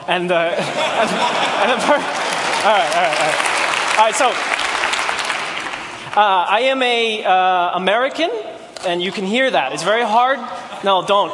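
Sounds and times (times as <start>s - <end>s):
speech: 0.1s - 4.6s, 6.2s - 11.3s
laughter: 0.4s - 4.4s, 9.7s - 11.3s
audience applause: 0.7s - 6.4s.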